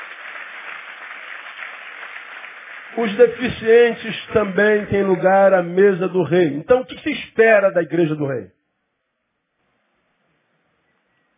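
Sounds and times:
audience applause: 0.0s - 5.8s
speech: 2.9s - 8.6s.

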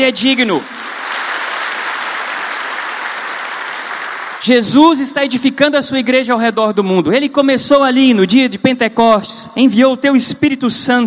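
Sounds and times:
speech: 0.0s - 0.8s, 4.4s - 11.0s
audience applauding: 0.3s - 4.5s.

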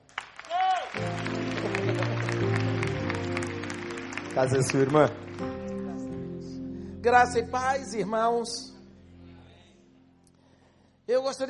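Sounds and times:
audience clapping: 0.0s - 6.2s
sustained keyboard chords: 1.0s - 10.8s
speech: 4.4s - 5.6s, 7.0s - 8.7s, 11.1s - 11.4s.

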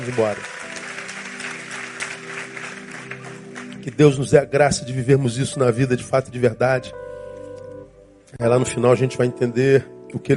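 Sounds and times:
speech: 0.0s - 0.6s, 3.9s - 7.0s, 8.3s - 10.3s
audience applause: 0.0s - 4.0s.

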